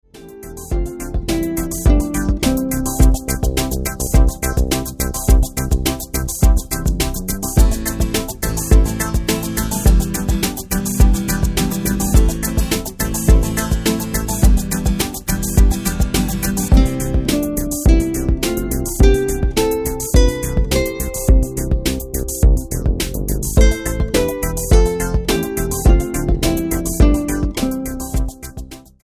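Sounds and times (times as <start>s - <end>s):
musical scale: 0.1s - 28.4s.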